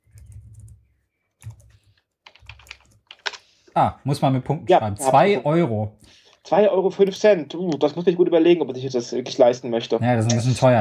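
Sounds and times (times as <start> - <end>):
computer keyboard typing a search: 0.1 - 0.8, 1.4 - 3.4
speech: 3.8 - 10.7.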